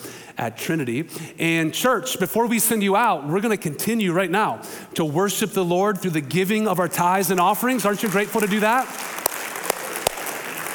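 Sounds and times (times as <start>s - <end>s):
speech: 0.4s - 9.2s
church audience clapping: 7.3s - 10.7s.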